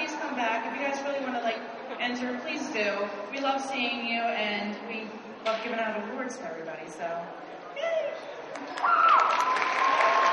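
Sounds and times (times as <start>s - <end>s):
speech: 0.4s - 8.0s, 8.7s - 9.5s
high cheering voices whooping: 7.8s - 10.3s
audience applauding hall cosplay competition winners: 8.5s - 10.3s.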